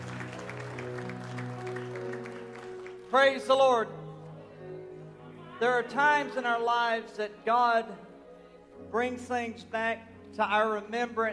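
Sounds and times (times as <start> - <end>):
audience hand clapping: 0.0 - 3.4
speech: 3.1 - 4.0, 5.6 - 8.1, 8.9 - 11.3.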